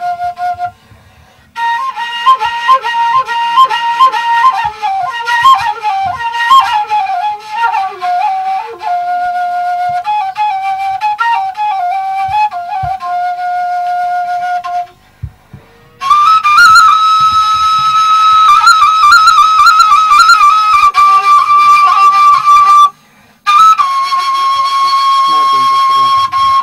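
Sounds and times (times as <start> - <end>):
ney taleshi: 0.0 - 26.6.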